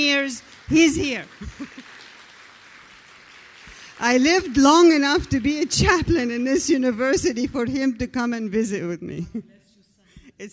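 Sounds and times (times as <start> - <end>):
speech: 0.0 - 1.9, 4.0 - 9.6
audience applause for guest: 0.4 - 6.0.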